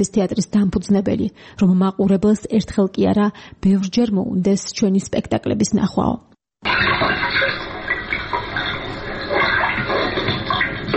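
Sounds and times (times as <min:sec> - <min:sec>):
speech: 0:00.0 - 0:07.6
running water sound effect in a shadow theatre performance: 0:06.6 - 0:10.9.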